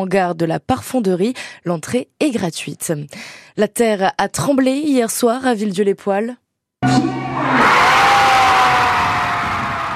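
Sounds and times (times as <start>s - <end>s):
speech: 0.0s - 6.4s
high-pitched excited scream: 6.8s - 9.9s
crowd cheering at victory announcement: 6.9s - 9.9s.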